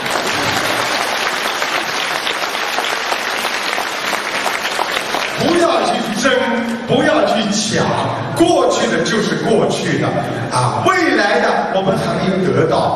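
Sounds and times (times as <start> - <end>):
audience applause: 0.0 - 6.1
speech: 5.4 - 12.9.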